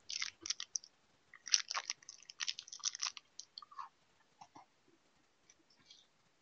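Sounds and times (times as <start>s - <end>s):
person crunching and chewing a snack: 0.0s - 3.9s.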